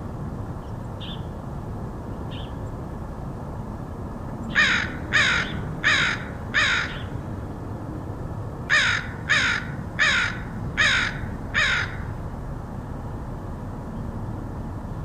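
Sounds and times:
low background hum: 0.0s - 15.0s
crow cawing: 4.5s - 7.1s, 8.7s - 12.2s.

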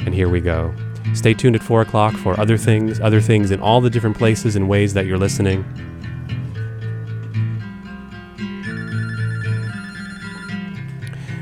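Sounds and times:
speech: 0.2s - 6.1s
telephone ringing with a melodic electronic tone: 8.6s - 10.8s.

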